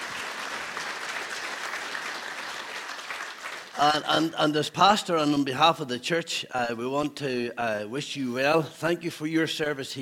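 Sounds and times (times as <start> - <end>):
audience applause: 0.0 - 4.3
speech: 3.8 - 10.0.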